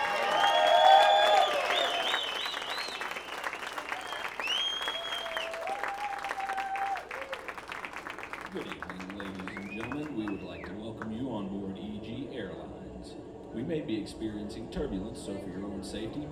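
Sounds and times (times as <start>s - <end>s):
audience applause welcoming a guitarist in Fort Wayne: 0.0s - 11.2s
speech: 14.0s - 16.3s.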